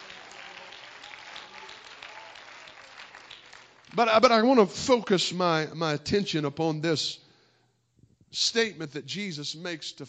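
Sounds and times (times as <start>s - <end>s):
audience clapping hands: 0.0s - 4.5s
speech: 3.9s - 7.2s, 8.3s - 10.0s.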